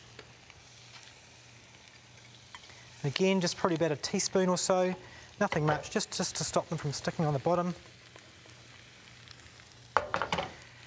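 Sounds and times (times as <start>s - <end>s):
oil sizzling in a frying pan on the heat: 0.0s - 10.8s
speech: 3.0s - 7.9s.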